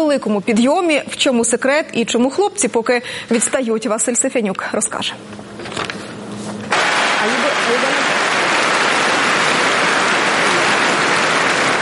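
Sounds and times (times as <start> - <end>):
speech: 0.0 - 6.0
applause at a tennis match in Paris: 6.7 - 11.8.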